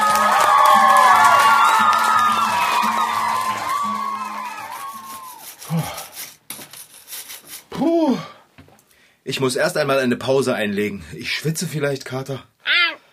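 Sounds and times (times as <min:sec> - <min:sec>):
theatre audience of children applauding: 0:00.0 - 0:05.9
speech: 0:09.4 - 0:12.5.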